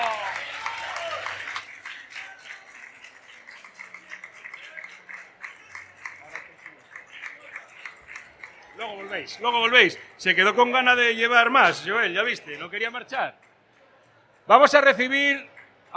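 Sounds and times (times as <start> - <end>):
audience applause: 0.0 - 10.0
speech: 8.8 - 13.4, 14.5 - 15.9.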